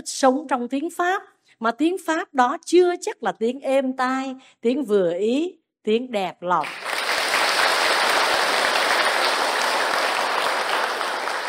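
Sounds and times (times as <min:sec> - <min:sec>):
speech: 0:00.0 - 0:06.9
audience applause at a Buddhist dharma talk: 0:06.6 - 0:11.4.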